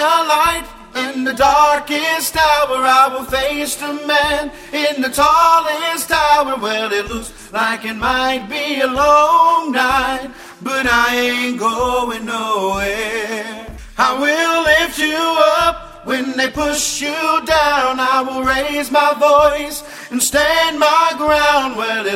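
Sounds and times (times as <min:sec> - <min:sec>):
tenor singing: 0:00.0 - 0:22.1.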